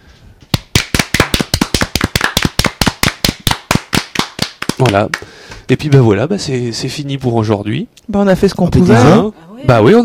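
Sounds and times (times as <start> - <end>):
hands clapping: 0.5 - 5.6
speech: 4.8 - 10.0.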